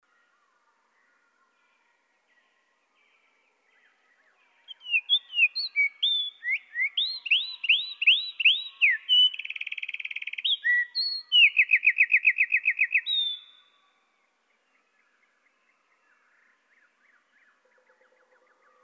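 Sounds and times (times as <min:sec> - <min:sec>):
Eurasian wren song, slowed: 0:04.7 - 0:13.8.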